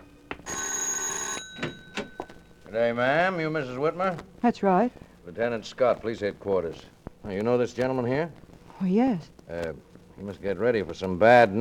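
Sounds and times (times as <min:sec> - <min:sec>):
doorbell ringing: 0:00.0 - 0:02.5
speech: 0:02.7 - 0:11.5.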